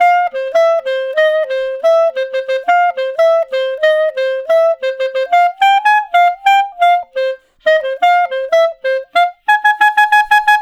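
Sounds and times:
clarinet solo: 0.0s - 10.6s.

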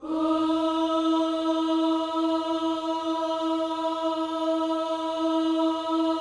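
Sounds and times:
vocal gospel singing: 0.0s - 6.1s.

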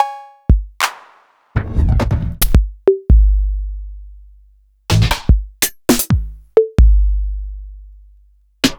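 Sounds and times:
Yamaha RM50 drum machine: 0.0s - 3.6s, 4.9s - 7.2s.

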